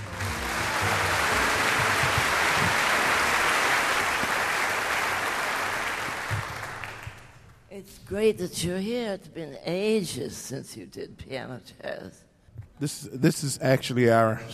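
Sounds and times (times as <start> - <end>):
audience applause greeting a jazz pianist: 0.0 - 7.5
speech: 8.1 - 12.2, 12.8 - 14.5.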